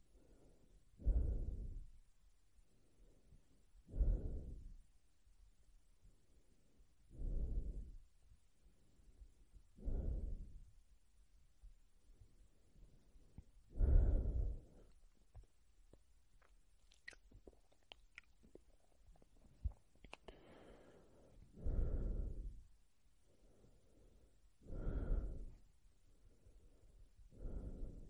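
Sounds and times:
slow mouth breathing: 0:00.2 - 0:01.9, 0:03.9 - 0:04.8, 0:07.1 - 0:08.0, 0:09.8 - 0:10.7, 0:13.7 - 0:15.5, 0:16.4 - 0:22.6, 0:23.4 - 0:25.6, 0:26.5 - 0:28.0
faint clicks and small mouth sounds: 0:16.4 - 0:20.4.

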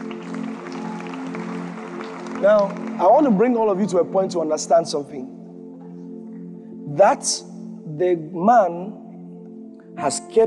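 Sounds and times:
audience clapping: 0:00.0 - 0:03.7
speech: 0:02.4 - 0:05.4, 0:07.0 - 0:09.0, 0:10.0 - 0:10.4.

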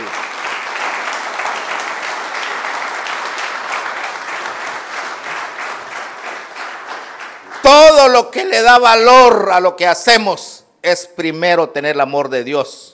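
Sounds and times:
audience clapping: 0:00.0 - 0:08.9
speech: 0:07.7 - 0:12.8.

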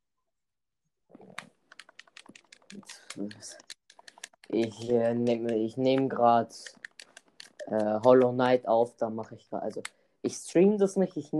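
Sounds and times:
typing on a computer keyboard: 0:01.3 - 0:08.4
speech: 0:02.8 - 0:03.7, 0:04.5 - 0:06.8, 0:07.7 - 0:11.3.

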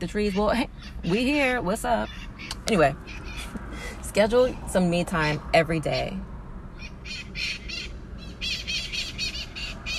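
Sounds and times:
speech: 0:00.0 - 0:03.5, 0:04.2 - 0:06.3
bird squawking in tree overhead: 0:00.0 - 0:03.6, 0:06.8 - 0:09.9.

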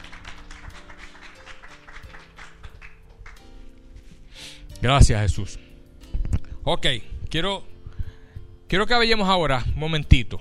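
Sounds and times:
crowd clapping: 0:00.0 - 0:03.6
sustained keyboard or organ chords: 0:00.0 - 0:10.3
speech: 0:04.8 - 0:05.6, 0:06.6 - 0:07.7, 0:08.7 - 0:10.3.

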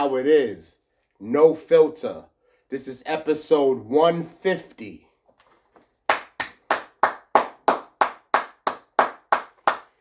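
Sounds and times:
speech: 0:00.0 - 0:05.0
single person clapping hands: 0:06.0 - 0:09.9.

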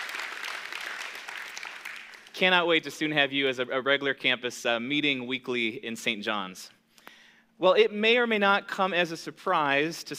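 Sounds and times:
audience applause: 0:00.0 - 0:02.3
speech: 0:02.4 - 0:06.8, 0:07.6 - 0:10.1.

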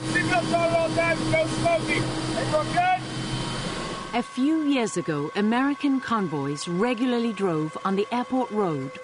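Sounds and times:
helicopter in flight: 0:00.0 - 0:09.0
speech: 0:00.4 - 0:03.1, 0:04.1 - 0:09.0.

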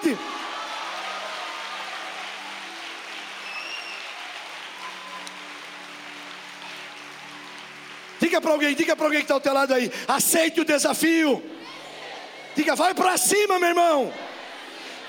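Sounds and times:
audience applauding: 0:00.0 - 0:09.9
speech: 0:00.1 - 0:00.4, 0:08.3 - 0:11.6, 0:12.6 - 0:14.2.

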